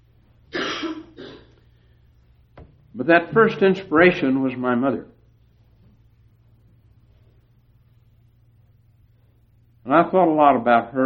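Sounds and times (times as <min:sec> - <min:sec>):
hiss: 0:00.0 - 0:11.0
throat clearing: 0:00.5 - 0:01.6
speech: 0:03.0 - 0:05.2, 0:09.9 - 0:11.0.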